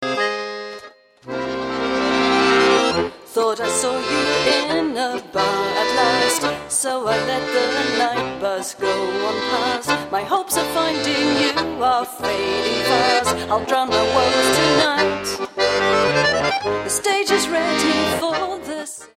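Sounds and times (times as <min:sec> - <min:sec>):
accordion: 0:00.0 - 0:19.1.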